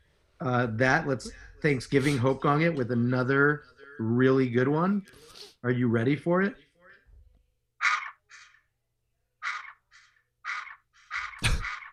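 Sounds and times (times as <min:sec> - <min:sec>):
speech: 0:00.4 - 0:06.6
duck quacking: 0:07.8 - 0:08.6, 0:09.4 - 0:11.9.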